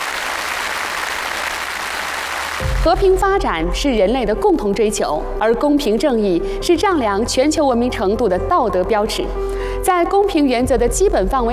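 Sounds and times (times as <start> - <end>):
audience applause after an academic lecture: 0.0 - 2.9
speech: 2.8 - 11.5.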